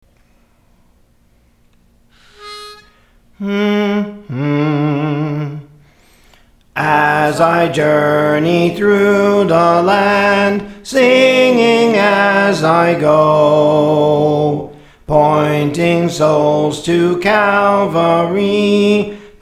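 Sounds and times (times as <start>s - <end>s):
soprano singing songs: 3.4s - 5.8s, 6.8s - 19.4s.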